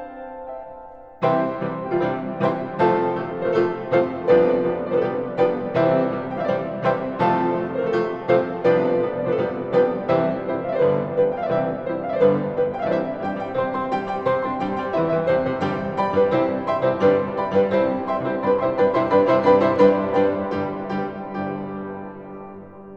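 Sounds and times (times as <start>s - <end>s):
allegro vivace symphony: 1.3s - 21.5s.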